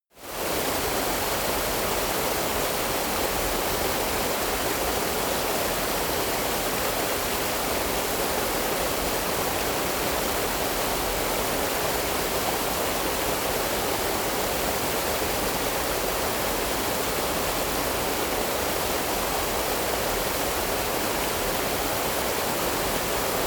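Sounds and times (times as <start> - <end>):
river stream: 0.3 - 23.4.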